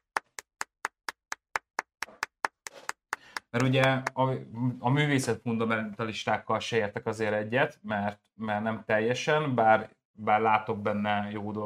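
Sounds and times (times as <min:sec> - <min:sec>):
hand clapping: 0:00.0 - 0:04.2
speech: 0:03.5 - 0:11.6.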